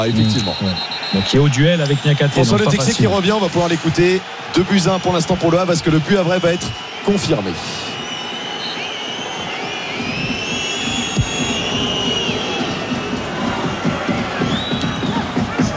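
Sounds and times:
speech: 0.0s - 7.9s
stadium crowd cheering: 0.0s - 15.7s
faint high whistling tones: 0.1s - 2.9s, 6.0s - 15.3s.

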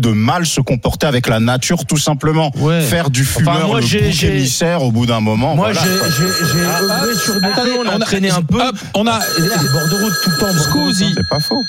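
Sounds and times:
speech: 0.0s - 11.6s
telephone ringing: 5.8s - 8.3s, 9.1s - 11.6s.

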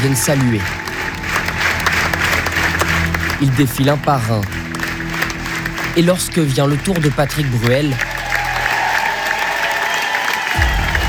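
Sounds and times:
speech: 0.0s - 0.8s, 3.4s - 4.6s, 6.0s - 8.1s
audience applause at the end of a stage show: 0.0s - 11.0s
low rumble: 10.6s - 11.0s.

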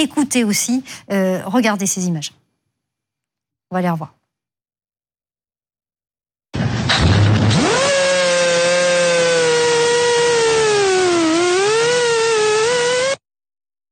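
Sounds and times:
speech: 0.0s - 2.4s, 3.7s - 4.2s
Russian military drone in flight: 6.6s - 13.2s.

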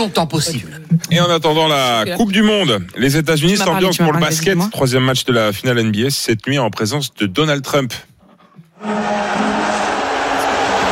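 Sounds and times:
speech: 0.0s - 8.1s
large arena crowd booing: 8.8s - 10.9s.

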